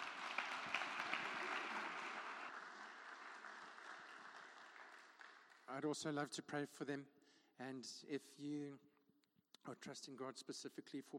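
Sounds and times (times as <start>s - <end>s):
audience applause: 0.0s - 5.7s
speech: 5.7s - 8.9s, 9.6s - 11.1s.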